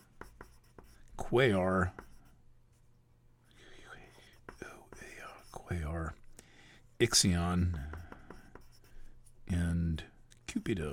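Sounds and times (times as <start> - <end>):
light green pencil scratching across paper: 0.0 - 2.4, 3.9 - 6.1, 7.4 - 9.6
speech: 1.2 - 2.0, 7.0 - 8.0, 10.6 - 10.9.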